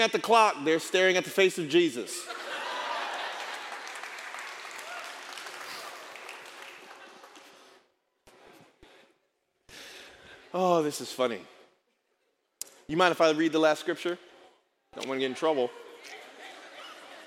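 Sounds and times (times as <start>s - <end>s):
speech: 0.0s - 2.4s, 10.5s - 11.6s, 12.9s - 14.3s, 14.9s - 16.2s
laughter: 2.1s - 4.1s, 5.6s - 7.8s, 15.1s - 17.2s
crowd applause: 2.4s - 7.8s.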